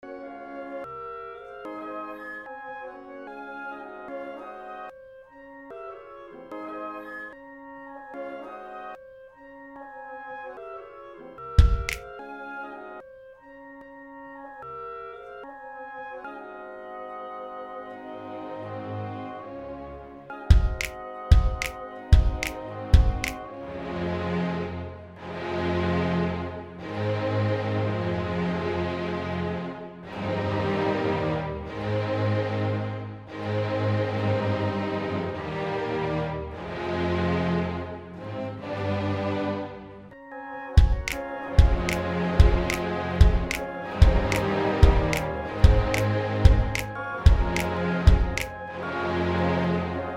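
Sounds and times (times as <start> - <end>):
instrumental music: 0.0 - 50.1.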